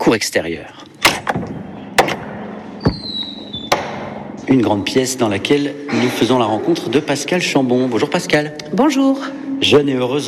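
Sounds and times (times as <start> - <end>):
speech: 0.1 - 0.9, 4.5 - 10.2
massive old door opening with loud wooden clunks: 1.0 - 4.3
thin high hinge squeal: 2.1 - 4.0.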